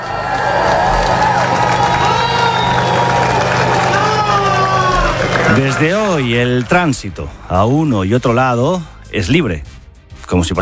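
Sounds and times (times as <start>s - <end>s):
crowd cheering and shouting at border crossing: 0.0s - 6.8s
low engine rumble: 0.1s - 7.4s
speech: 5.6s - 10.6s.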